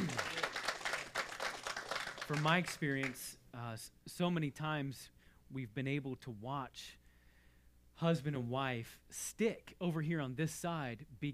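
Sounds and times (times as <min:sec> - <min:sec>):
audience applause: 0:00.0 - 0:03.2
speech: 0:02.3 - 0:07.0, 0:08.0 - 0:11.3.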